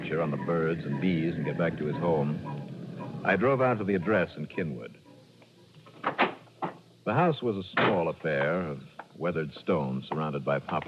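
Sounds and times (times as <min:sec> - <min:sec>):
speech: 0:00.1 - 0:02.6, 0:03.2 - 0:05.0, 0:07.1 - 0:10.8
door closing at back of house: 0:05.9 - 0:06.8, 0:07.7 - 0:08.6.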